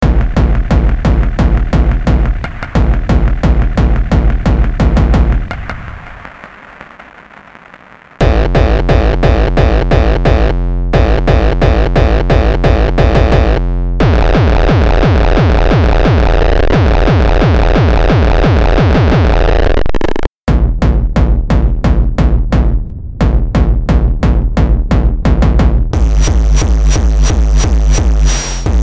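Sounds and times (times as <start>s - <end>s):
punchy bass drum: 0.0s - 6.0s, 8.2s - 19.6s, 20.4s - 28.8s.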